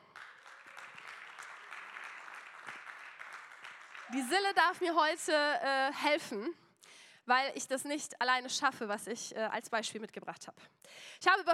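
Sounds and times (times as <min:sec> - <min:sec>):
audience applause: 0:00.0 - 0:04.6
speech: 0:04.1 - 0:06.6, 0:07.2 - 0:11.5.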